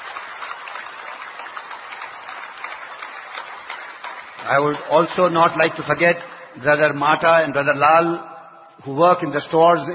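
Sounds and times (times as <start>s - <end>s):
audience applause: 0.0s - 5.7s
speech: 4.4s - 9.9s.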